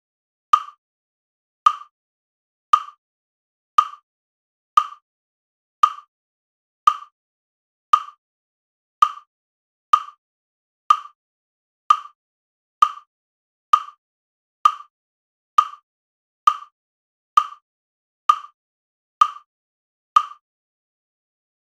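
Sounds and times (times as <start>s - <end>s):
metronome in E major: 0.5s - 0.8s, 1.6s - 1.9s, 2.7s - 3.0s, 3.8s - 4.0s, 4.8s - 5.0s, 5.8s - 6.1s, 6.9s - 7.1s, 7.9s - 8.2s, 9.0s - 9.3s, 9.9s - 10.2s, 10.9s - 11.2s, 11.9s - 12.2s, 12.8s - 13.1s, 13.7s - 14.0s, 14.6s - 14.9s, 15.6s - 15.8s, 16.5s - 16.7s, 17.4s - 17.6s, 18.3s - 18.6s, 19.2s - 19.5s, 20.2s - 20.4s.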